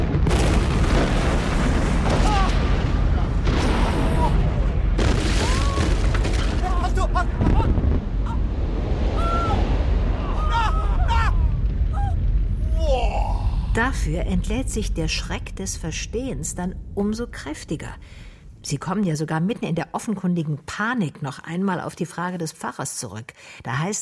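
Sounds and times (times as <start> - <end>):
thunderous roaring rumble of a mountainside explosion: 0.0 - 18.7
people at a cemetery crying out: 9.2 - 12.2
speech: 14.0 - 23.9.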